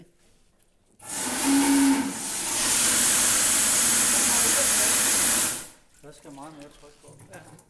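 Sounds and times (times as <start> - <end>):
weak steam whistle: 1.0 - 5.8
people talking: 4.0 - 7.4.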